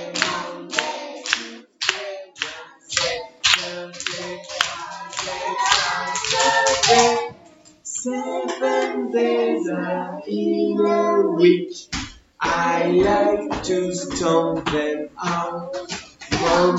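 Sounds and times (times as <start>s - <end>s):
hands clapping along to the beat: 0.0s - 7.3s, 11.9s - 16.7s
speech: 8.0s - 16.7s.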